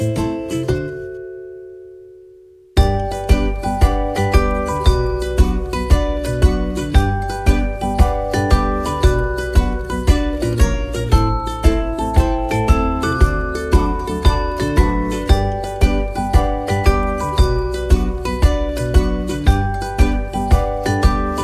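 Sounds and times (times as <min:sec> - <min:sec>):
slow rolls music: 0:02.8 - 0:21.4.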